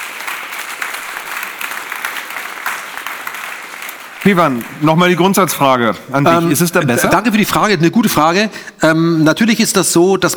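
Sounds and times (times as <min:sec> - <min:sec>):
audience applause: 0:00.0 - 0:07.8
laughter: 0:04.0 - 0:10.3
speech: 0:04.2 - 0:10.3.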